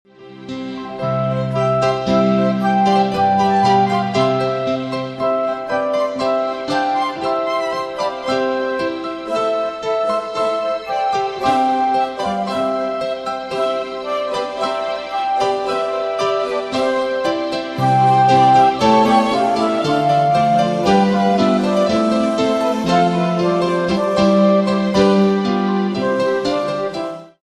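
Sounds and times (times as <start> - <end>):
instrumental music: 0.1 - 27.4.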